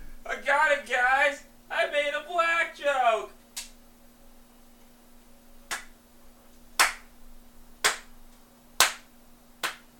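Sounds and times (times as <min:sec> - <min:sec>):
faint steady hum: 0:00.0 - 0:09.9
slow hand claps: 0:05.7 - 0:06.0, 0:06.8 - 0:07.1, 0:07.8 - 0:08.1, 0:08.8 - 0:09.9.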